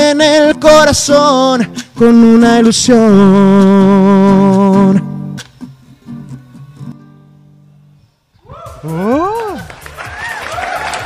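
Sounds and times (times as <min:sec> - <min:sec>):
sung melody with steady accompaniment: 0:00.0 - 0:11.0
speech: 0:00.2 - 0:05.1
person calling out over the clapping: 0:08.5 - 0:09.7
audience applause: 0:09.4 - 0:11.0.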